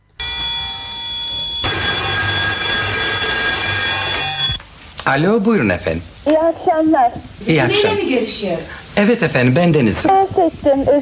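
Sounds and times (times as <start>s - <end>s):
telephone ringing: 0.0s - 4.6s
speech: 5.1s - 10.9s.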